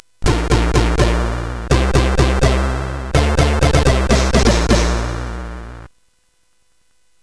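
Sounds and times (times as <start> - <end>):
jingle on SID CSG8580R5 chip: 0.2 - 5.9.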